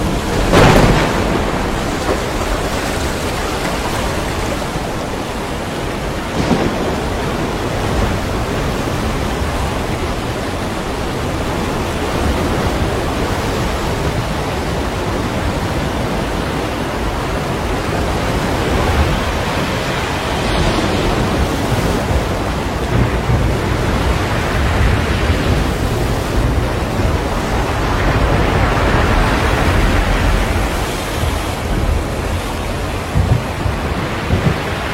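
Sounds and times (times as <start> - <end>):
storm at sea wind and water roaring: 0.0 - 34.9.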